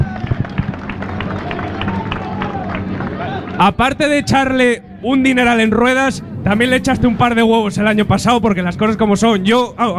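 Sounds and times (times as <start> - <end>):
audience applause: 0.0 - 4.1
speech: 3.6 - 9.9.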